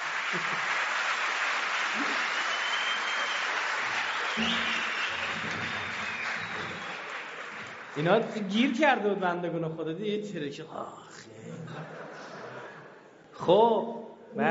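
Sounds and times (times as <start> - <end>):
hand clapping: 0.0 - 8.3
laughter: 0.3 - 0.8, 11.4 - 13.1
speech: 0.3 - 0.8, 4.4 - 4.7, 8.0 - 11.6, 13.4 - 14.4.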